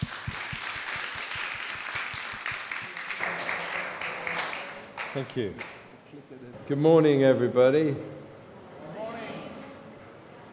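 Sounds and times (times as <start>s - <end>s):
church congregation applauding in welcome: 0.0s - 5.3s
speech: 5.2s - 8.2s.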